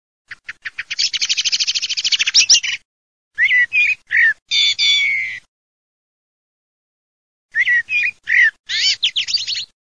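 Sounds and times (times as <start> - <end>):
common blackbird calling: 0.3 - 2.8, 3.4 - 5.5, 7.5 - 9.7.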